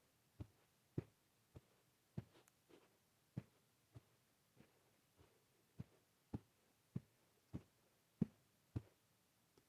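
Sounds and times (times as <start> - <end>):
footsteps walking on carpet: 0.4 - 8.9.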